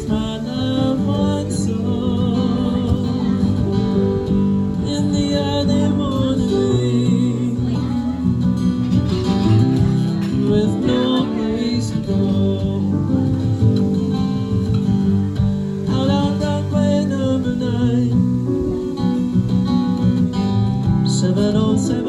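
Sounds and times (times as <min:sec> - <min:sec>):
guitar: 0:00.0 - 0:22.0
piano: 0:00.0 - 0:22.0.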